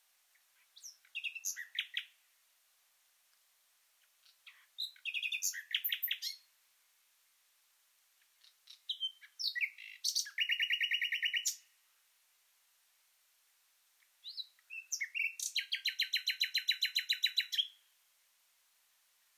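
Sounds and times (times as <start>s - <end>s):
common nightingale singing: 0.3s - 2.2s, 4.0s - 6.5s, 8.2s - 11.7s, 14.0s - 17.9s.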